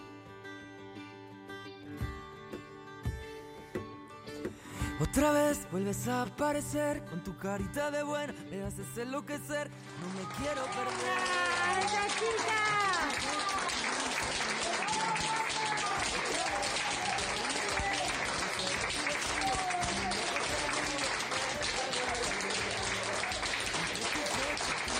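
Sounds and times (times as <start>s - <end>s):
speech: 5.0s - 13.8s
crowd clapping for a discharged hospital patient: 9.8s - 24.9s.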